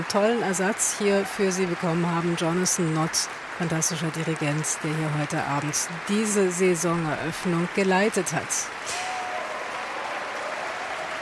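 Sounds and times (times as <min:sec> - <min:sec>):
speech: 0:00.0 - 0:09.1
large concert audience applauding: 0:00.0 - 0:11.2.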